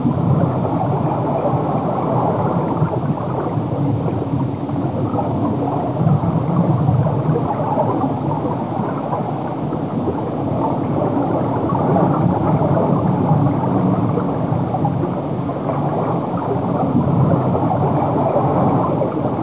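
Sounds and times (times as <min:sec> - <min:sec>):
water: 0:00.0 - 0:19.4.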